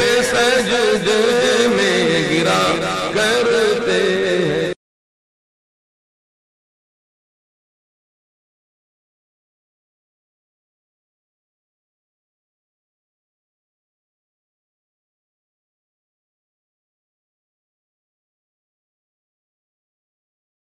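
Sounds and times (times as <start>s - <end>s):
person reciting kalam: 0.0s - 4.8s.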